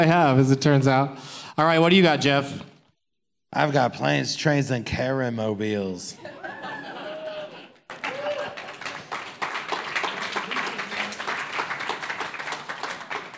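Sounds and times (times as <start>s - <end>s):
speech: 0.0s - 2.7s, 3.5s - 6.6s
laughter: 6.2s - 9.1s
crowd clapping: 7.3s - 13.3s.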